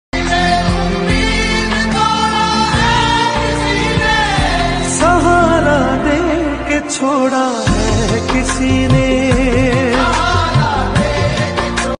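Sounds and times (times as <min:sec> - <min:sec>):
sad song: 0:00.2 - 0:11.9.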